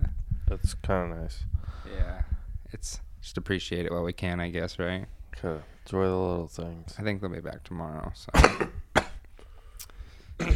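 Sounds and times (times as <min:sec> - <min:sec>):
speech: 0:00.6 - 0:08.8
harsh forced imitation coughs: 0:08.3 - 0:09.2, 0:10.4 - 0:10.5.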